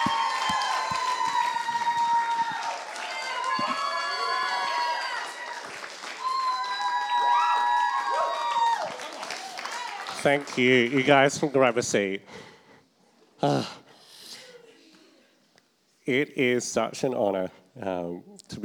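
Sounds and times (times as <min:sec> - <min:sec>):
crowd cheering and clapping: 0:00.0 - 0:11.5
speech: 0:10.2 - 0:12.5, 0:13.4 - 0:13.8, 0:16.1 - 0:18.6.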